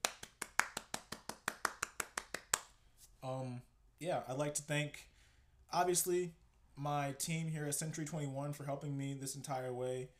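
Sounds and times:
one person clapping hands: 0.0s - 2.7s
speech: 3.2s - 5.1s, 5.7s - 10.1s.

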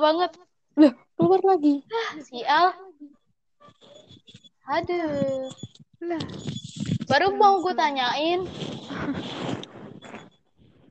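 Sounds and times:
speech: 0.0s - 3.1s, 3.7s - 9.7s
rustling noise in a room: 3.7s - 10.8s.

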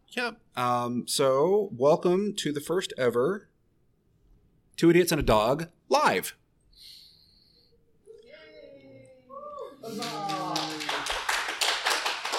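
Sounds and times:
speech: 0.1s - 3.5s, 4.8s - 6.4s, 9.8s - 10.3s
cheering: 9.3s - 12.3s
audience applause: 9.8s - 12.3s.

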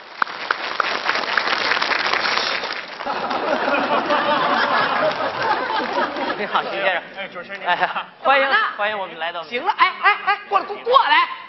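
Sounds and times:
sustained audience applause: 0.0s - 6.7s
laughter: 3.0s - 8.2s, 9.6s - 11.2s
speech: 6.4s - 11.4s.

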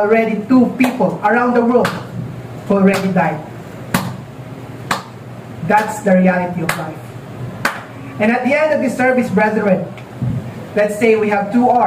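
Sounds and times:
speech: 0.0s - 3.5s, 5.6s - 7.0s, 8.2s - 10.0s, 10.8s - 11.8s
single hand clap: 3.9s - 4.2s, 4.9s - 5.1s, 7.6s - 7.9s.

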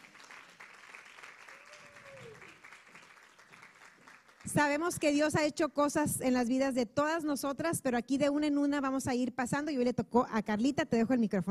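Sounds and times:
audience applause: 0.0s - 4.5s
speech: 4.5s - 11.4s.

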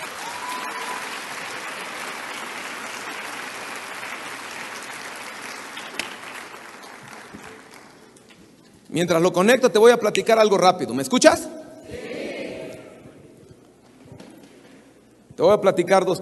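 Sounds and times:
audience applause: 0.0s - 8.2s
speech: 8.9s - 11.6s, 15.4s - 16.2s.

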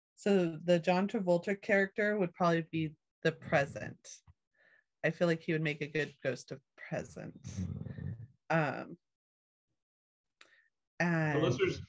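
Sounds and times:
speech: 0.2s - 4.3s, 5.0s - 7.8s, 8.5s - 9.0s, 11.0s - 11.8s
sleeping dog snoring: 7.5s - 8.3s.

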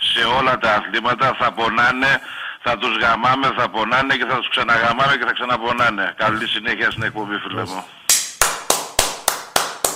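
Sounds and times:
speech: 0.2s - 8.0s
applause: 8.1s - 9.9s.

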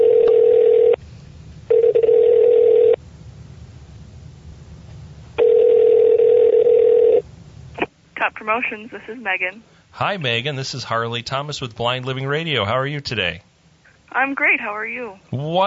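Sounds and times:
telephone dialing: 0.0s - 0.9s, 1.7s - 3.0s, 5.4s - 7.2s
speech: 8.5s - 13.5s, 14.1s - 15.6s.

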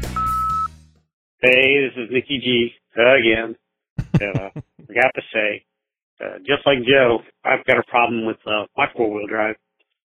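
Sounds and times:
voicemail beep: 0.1s - 0.7s
speech: 1.4s - 9.7s
laughter: 4.0s - 5.0s.

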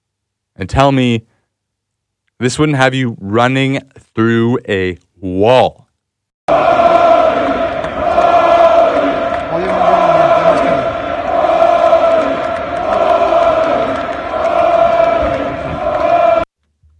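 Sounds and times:
speech: 0.6s - 1.3s, 2.4s - 5.8s
large crowd of golf fans cheering and chanting: 6.5s - 16.5s.

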